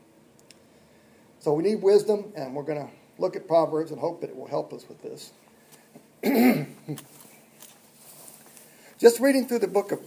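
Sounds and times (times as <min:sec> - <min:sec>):
speech: 0:01.4 - 0:05.5, 0:06.2 - 0:07.1, 0:09.0 - 0:10.0
person coughing after breathing noxious fumes: 0:06.2 - 0:07.1.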